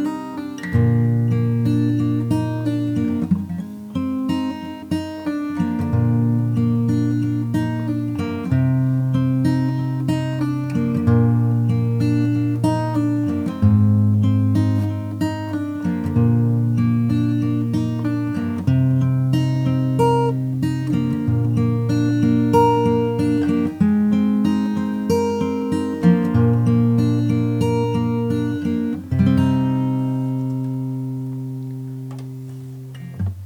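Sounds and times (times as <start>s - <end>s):
fingerstyle guitar ear study exercise: 0.0s - 33.4s.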